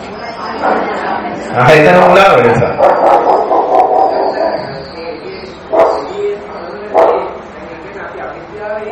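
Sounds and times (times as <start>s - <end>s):
speech: 1.5s - 3.2s
dog barking outside: 2.8s - 4.7s, 5.7s - 6.2s, 6.9s - 7.4s.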